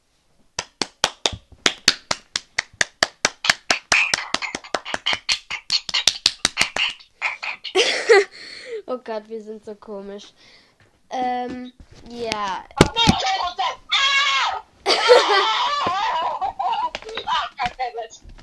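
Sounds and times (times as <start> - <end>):
brisk hand clapping: 0.6 - 7.7, 15.8 - 17.9
laughter: 7.8 - 8.4, 14.8 - 17.4
speech: 8.9 - 10.6, 11.2 - 13.3
rustling noise: 9.6 - 13.6, 15.9 - 18.4.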